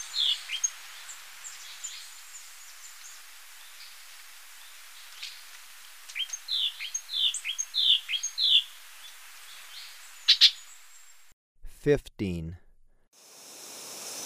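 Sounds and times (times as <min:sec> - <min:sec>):
sepia-brown wren whistled calls: 0:00.0 - 0:04.0, 0:06.1 - 0:11.3
speech: 0:11.8 - 0:12.6.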